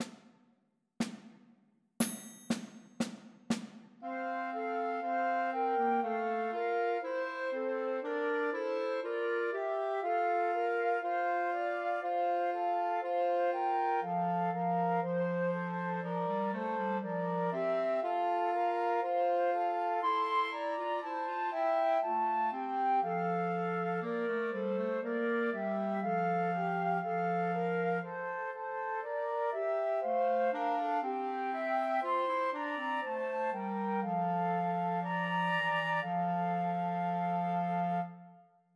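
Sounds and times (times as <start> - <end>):
clarinet: 4.0 - 38.6
two flutes: 4.0 - 38.6.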